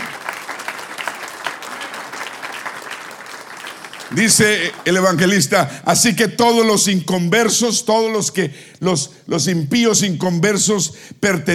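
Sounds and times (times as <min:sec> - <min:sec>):
audience applauding: 0:00.0 - 0:05.8
speech: 0:04.1 - 0:11.5.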